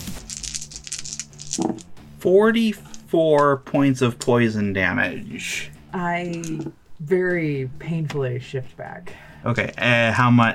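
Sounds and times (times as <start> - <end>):
handful of dice rolling on hard tabletop: 0.2 - 1.9, 6.3 - 6.7
speech: 1.6 - 10.5.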